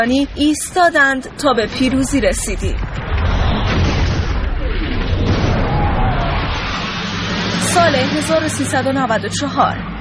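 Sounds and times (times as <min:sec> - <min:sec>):
speech: 0:00.0 - 0:03.0, 0:07.8 - 0:09.9
bomb explosion: 0:01.7 - 0:08.8.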